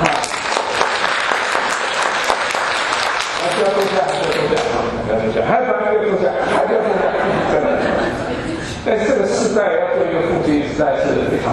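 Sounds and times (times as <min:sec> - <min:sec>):
room full of people clapping: 0:00.0 - 0:04.8
laughter: 0:06.0 - 0:09.6
speech: 0:09.6 - 0:11.5.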